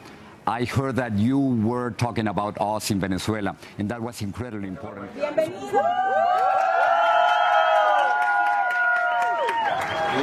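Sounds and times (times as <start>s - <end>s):
speech: 0.5s - 6.4s
audience applauding: 6.0s - 10.2s.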